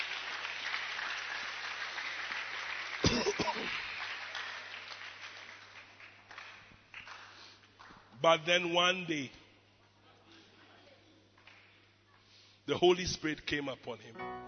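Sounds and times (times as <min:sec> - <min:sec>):
audience applause: 0:00.0 - 0:07.6
speech: 0:08.2 - 0:09.4, 0:12.7 - 0:14.4.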